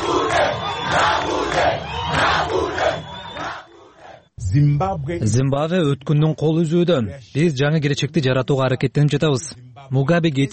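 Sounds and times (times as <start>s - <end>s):
crowd of demonstrators shouting and chanting in Harare, Zimbabwe: 0.0s - 4.4s
speech: 4.6s - 10.5s.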